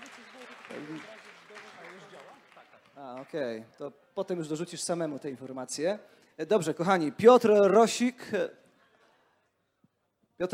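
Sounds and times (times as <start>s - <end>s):
applause: 0.0s - 3.8s
speech: 0.7s - 1.2s, 3.0s - 8.6s.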